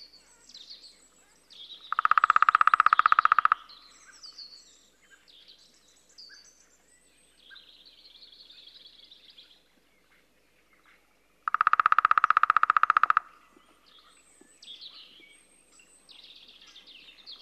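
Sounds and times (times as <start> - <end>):
lesser spotted woodpecker drumming: 1.9 - 3.8, 11.4 - 13.8.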